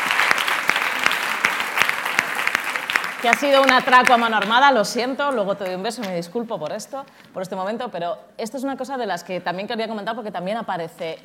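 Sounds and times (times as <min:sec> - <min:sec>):
applause: 0:00.0 - 0:04.6
speech: 0:03.2 - 0:11.2.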